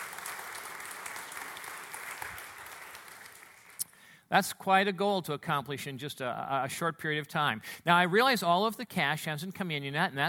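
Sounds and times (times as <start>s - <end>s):
audience applauding: 0.0s - 3.8s
speech: 4.3s - 10.2s.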